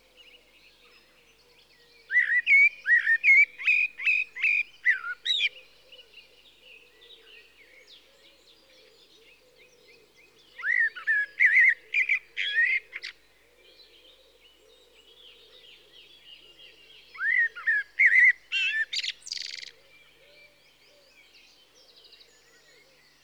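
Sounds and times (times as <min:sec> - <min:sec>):
common blackbird fluty whistled song: 0:02.1 - 0:05.6, 0:10.6 - 0:13.1, 0:17.0 - 0:19.8.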